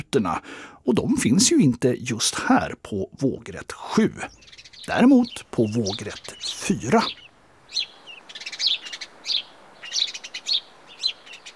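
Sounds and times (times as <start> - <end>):
speech: 0.0 - 7.9
house sparrow chirping: 3.3 - 11.5.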